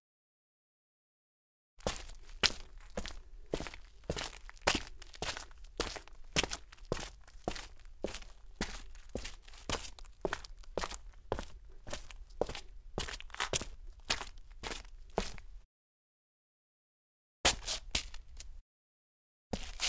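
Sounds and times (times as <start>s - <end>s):
sneaker footsteps on gritty cement: 1.8s - 15.5s, 19.6s - 19.8s.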